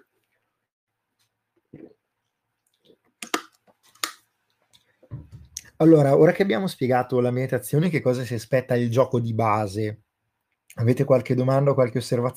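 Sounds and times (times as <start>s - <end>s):
person drinking water: 1.6s - 3.4s
speech: 1.7s - 2.0s, 5.8s - 10.0s, 10.8s - 12.3s.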